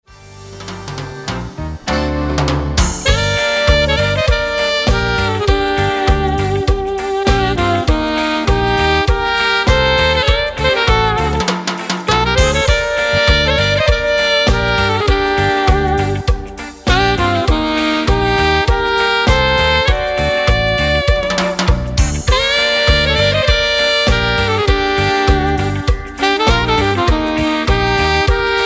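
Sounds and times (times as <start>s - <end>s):
cumbia reggae music: 0.0s - 28.6s.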